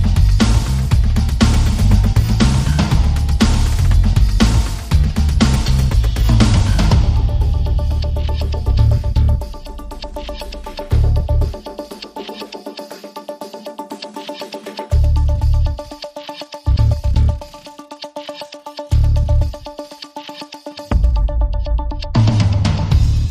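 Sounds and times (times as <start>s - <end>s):
bass percussion: 0.0s - 12.8s, 14.9s - 16.1s, 16.7s - 17.6s, 18.9s - 19.7s, 20.9s - 23.3s
electronic pulses: 0.0s - 22.2s.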